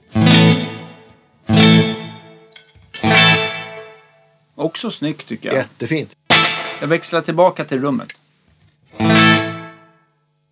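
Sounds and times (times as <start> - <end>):
strummed electric guitar chords through small hall reverb pedal: 0.0 - 4.3, 6.2 - 7.2, 8.8 - 10.0
speech: 4.6 - 6.2, 6.8 - 8.2.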